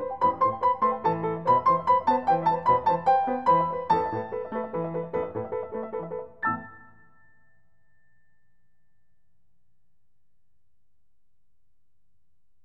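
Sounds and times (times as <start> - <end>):
Armenian piano melody: 0.0 - 7.5.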